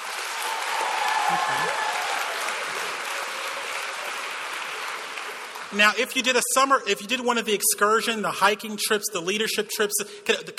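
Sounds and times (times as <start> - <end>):
audience round of applause: 0.0 - 6.2
speech: 1.3 - 1.9, 5.7 - 10.5.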